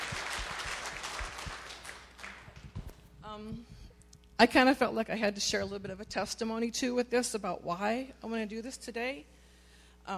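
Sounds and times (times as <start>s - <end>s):
crowd applauding: 0.0s - 2.8s
speech: 3.4s - 3.8s, 4.4s - 9.4s.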